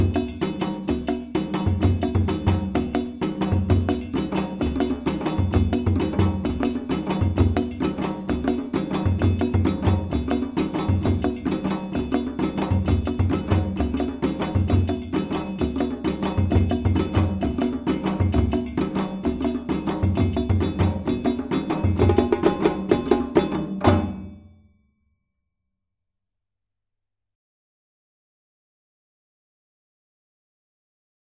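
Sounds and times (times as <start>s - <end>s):
djembe drumming: 0.0s - 24.3s.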